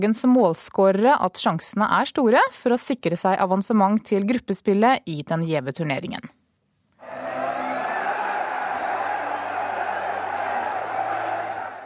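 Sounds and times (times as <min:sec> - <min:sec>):
speech: 0:00.0 - 0:06.4
football crowd cheering in ecstasy at Alfheim: 0:07.0 - 0:11.8.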